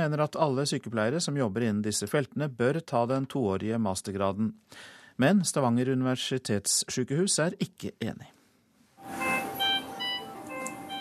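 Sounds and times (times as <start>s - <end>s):
speech: 0.0s - 8.4s
patient monitor alarm for high blood pressure: 9.0s - 11.0s.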